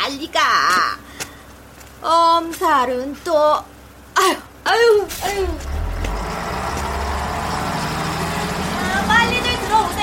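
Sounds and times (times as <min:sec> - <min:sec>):
speech: 0:02.0 - 0:05.8
bus pulling away: 0:04.0 - 0:10.0.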